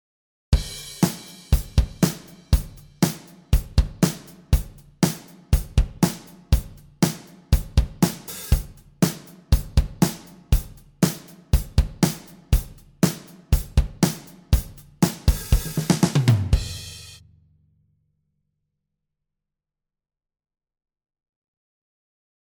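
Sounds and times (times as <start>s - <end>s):
drum mix: 0.6s - 17.2s.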